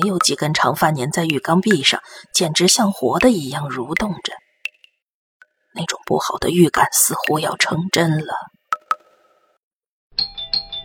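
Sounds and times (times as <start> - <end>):
speech: 0.0 - 4.4, 5.8 - 8.6
hotel room doorbell chiming: 10.2 - 10.8.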